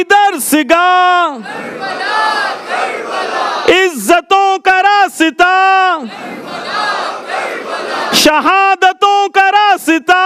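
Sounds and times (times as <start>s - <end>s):
speech: 0.0s - 6.7s, 7.5s - 10.2s
crowd at a religious gathering shouting back a Shia slogan in unison: 1.2s - 4.0s, 5.4s - 8.6s.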